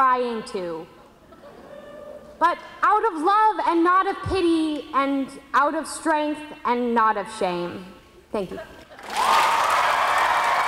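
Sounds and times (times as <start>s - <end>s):
speech: 0.0s - 1.0s, 2.4s - 9.2s
crowd applause for a poet: 9.0s - 10.6s.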